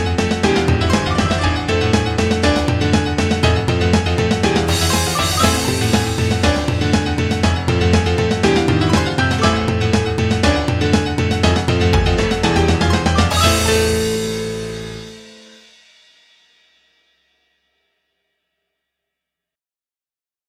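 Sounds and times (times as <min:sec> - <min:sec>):
jazz music: 0:00.0 - 0:15.8.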